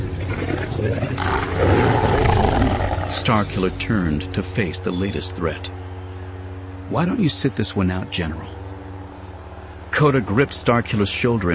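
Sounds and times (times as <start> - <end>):
beast snarling with a deep rumbling growl: 0.0 - 3.3
speech: 3.1 - 5.8, 6.9 - 8.6, 10.0 - 11.5.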